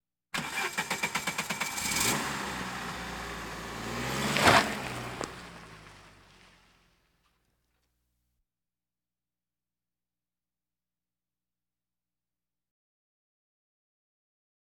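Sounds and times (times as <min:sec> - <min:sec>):
various automobiles: 0:00.4 - 0:07.0.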